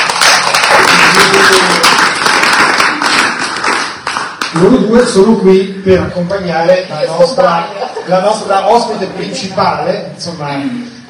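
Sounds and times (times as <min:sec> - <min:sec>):
audience applause: 0:00.0 - 0:04.7
speech: 0:04.6 - 0:11.0
laughter: 0:07.1 - 0:09.8.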